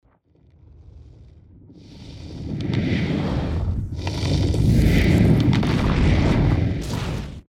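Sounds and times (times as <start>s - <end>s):
fire element spell effect: 1.8s - 7.4s.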